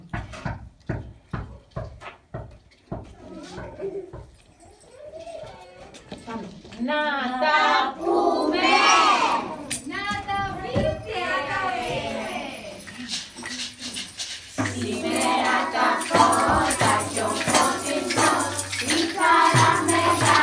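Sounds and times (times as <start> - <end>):
Epiphany carol singing: 7.2 - 20.4.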